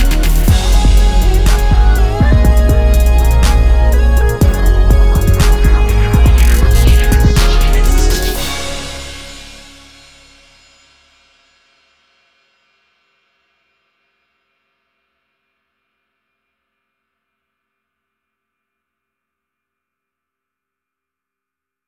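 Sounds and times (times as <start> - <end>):
music beat at 122 bpm: 0.0 - 10.2.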